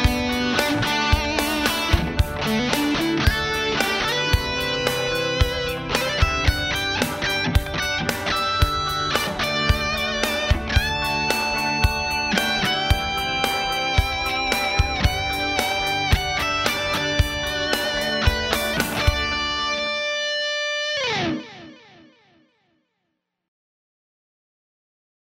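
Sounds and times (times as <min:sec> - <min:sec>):
high gain electric guitar on bridge burstbucker pickup: 0:00.0 - 0:22.4.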